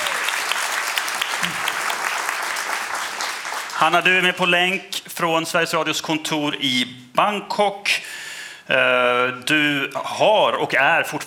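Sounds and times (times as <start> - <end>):
audience applause: 0.0 - 4.3
speech: 3.8 - 8.0, 8.7 - 11.2.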